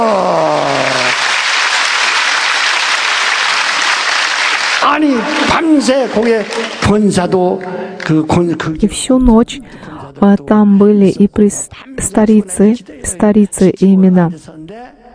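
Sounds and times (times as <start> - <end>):
audience clapping: 0.0 - 8.2
speech: 5.8 - 14.9.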